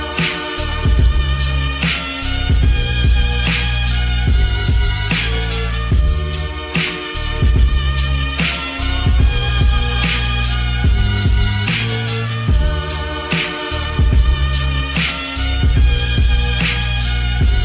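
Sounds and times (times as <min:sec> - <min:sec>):
slowed music with reverb: 0:00.0 - 0:17.6.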